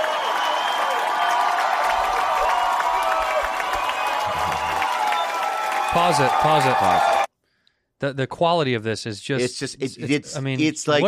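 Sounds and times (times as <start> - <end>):
crowd applause and cheering: 0.0 - 7.3
speech: 6.0 - 7.2, 8.0 - 11.0.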